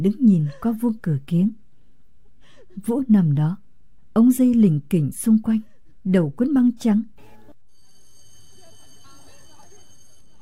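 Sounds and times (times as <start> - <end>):
speech: 0.0 - 1.6, 2.8 - 3.6, 4.2 - 7.1
hospital monitor alarm: 7.7 - 10.4
voices: 8.4 - 10.4.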